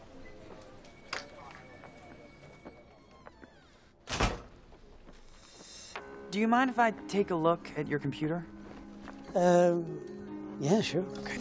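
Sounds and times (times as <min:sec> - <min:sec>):
door swinging shut: 0:04.0 - 0:04.6
speech: 0:06.3 - 0:08.6, 0:09.3 - 0:11.3.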